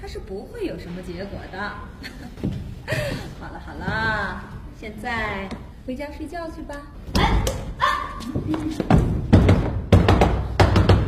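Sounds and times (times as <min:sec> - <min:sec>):
speech: 0:00.1 - 0:09.1
knocking on a door: 0:08.9 - 0:11.0.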